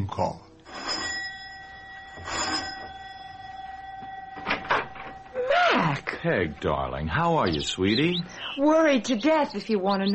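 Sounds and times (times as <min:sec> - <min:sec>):
speech: 0:00.0 - 0:00.8, 0:05.8 - 0:10.1
doorbell ringing: 0:00.6 - 0:08.1.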